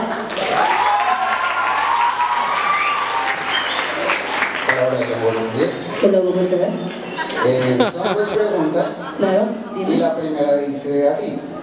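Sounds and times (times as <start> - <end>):
audience applause: 0.1 - 5.9
speech: 5.6 - 11.6
laughter: 7.0 - 9.9.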